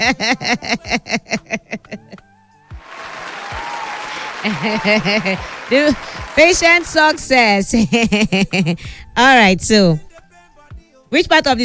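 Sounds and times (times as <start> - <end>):
speech: 0.0 - 1.2, 4.6 - 10.0, 11.1 - 11.6
laughter: 0.0 - 2.2, 2.8 - 8.8
clapping: 2.7 - 7.6.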